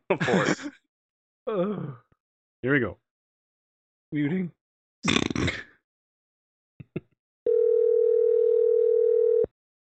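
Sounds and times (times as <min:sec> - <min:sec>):
speech: 0:00.1 - 0:00.8, 0:01.5 - 0:02.0, 0:02.6 - 0:03.0, 0:04.1 - 0:05.7
telephone dial tone before voicemail: 0:07.5 - 0:09.5.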